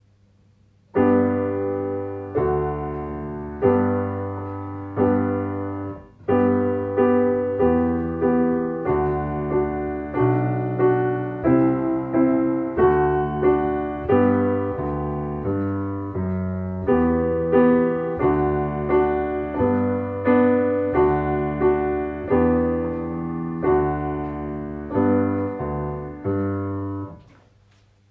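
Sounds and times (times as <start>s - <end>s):
piano: 0.8s - 28.0s.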